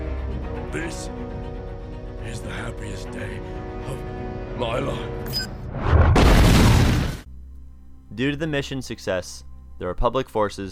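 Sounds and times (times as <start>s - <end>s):
speech: 0.7s - 1.4s, 2.2s - 6.4s, 8.1s - 10.7s
explosion sound effect: 5.7s - 7.3s.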